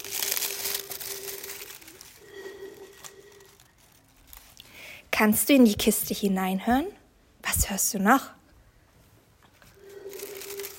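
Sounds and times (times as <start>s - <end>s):
leaves rustling in the wind: 0.0s - 4.6s
speech: 5.2s - 7.0s, 7.7s - 8.4s.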